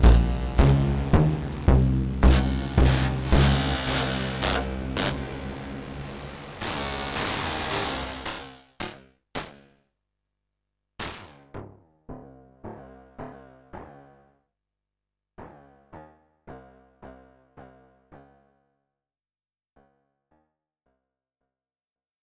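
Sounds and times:
SUPER6 synthesizer effects: 0:00.0 - 0:08.6.

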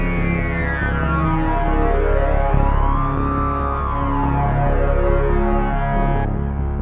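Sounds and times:
Roland JDXA synthesizer sync sound: 0:00.0 - 0:06.7.

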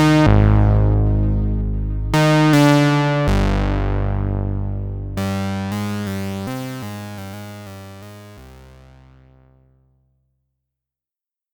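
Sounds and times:
low saw lead synthesizer: 0:00.0 - 0:07.8.

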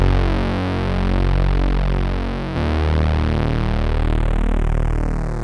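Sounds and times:
two-voice synthesizer filter sweep: 0:00.0 - 0:05.3.

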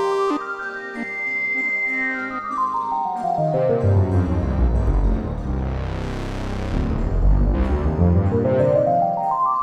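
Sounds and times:
SUPER6 synthesizer solo: 0:00.0 - 0:09.5.

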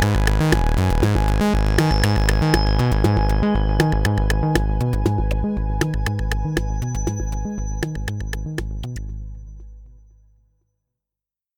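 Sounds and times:
TR808 drum machine: 0:00.0 - 0:09.2
Roland JD800 synthesizer: 0:00.0 - 0:10.2.

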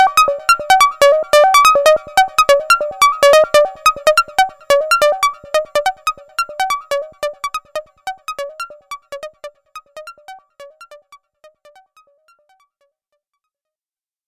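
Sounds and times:
morphing synthesizer oscillator: 0:00.0 - 0:11.1.

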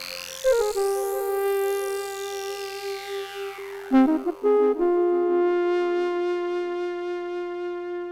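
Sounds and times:
synthesizer solo: 0:00.0 - 0:07.9.

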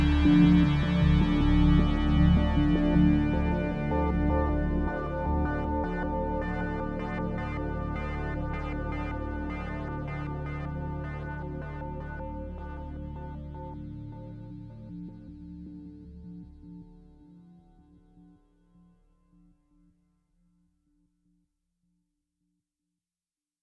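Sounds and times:
Roland Jupiter-8 synthesizer massive pad: 0:00.0 - 0:17.3.

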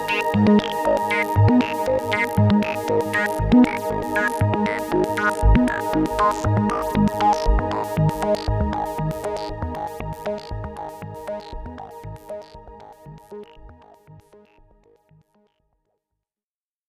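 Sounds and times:
synthesizer mix: 0:00.0 - 0:12.8.

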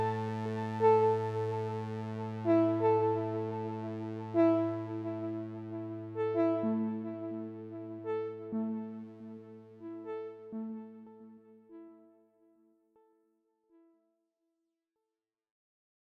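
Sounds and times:
sweet octave tones: 0:00.0 - 0:11.1.

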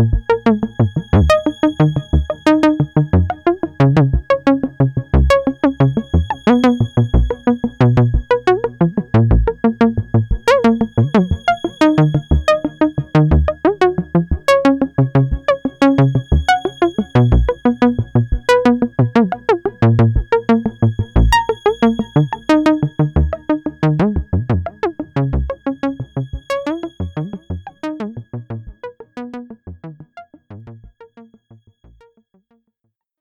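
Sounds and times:
Juno-60 JD-800 synthesizer: 0:00.0 - 0:32.3.

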